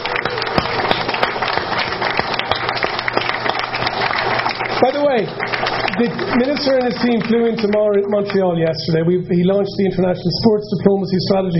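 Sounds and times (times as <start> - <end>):
audience round of applause: 0.0 - 8.5
speech: 6.0 - 11.5.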